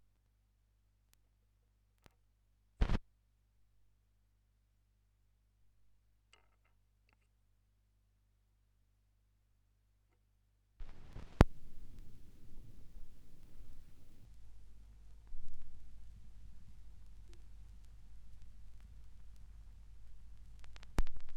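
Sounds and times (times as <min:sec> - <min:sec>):
vinyl record noise from a vinyl rip: 0:02.8 - 0:03.0, 0:10.8 - 0:21.3.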